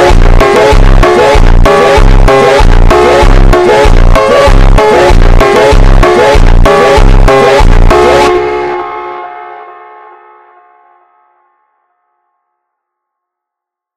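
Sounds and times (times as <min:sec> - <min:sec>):
slowed funk music: 0:00.0 - 0:09.4.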